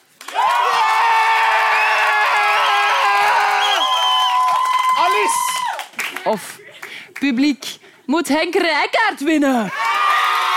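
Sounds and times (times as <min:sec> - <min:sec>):
audience clapping: 0:00.0 - 0:07.6, 0:09.7 - 0:10.5
audience cheering and whooping: 0:00.2 - 0:06.3, 0:09.7 - 0:10.5
speech: 0:06.3 - 0:06.6, 0:07.2 - 0:09.8.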